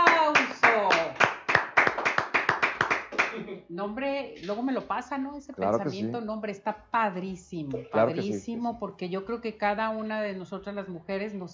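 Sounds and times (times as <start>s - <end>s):
applause: 0.0s - 3.4s
speech: 3.7s - 11.5s.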